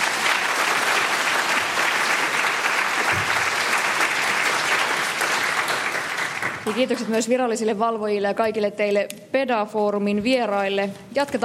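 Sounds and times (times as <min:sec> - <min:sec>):
audience applause: 0:00.0 - 0:07.1
speech: 0:06.6 - 0:11.4.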